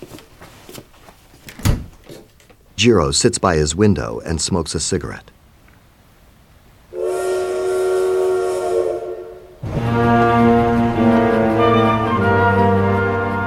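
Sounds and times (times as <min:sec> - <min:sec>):
speech: 0:02.8 - 0:05.4
steam train whistle in the German countryside: 0:06.9 - 0:13.4.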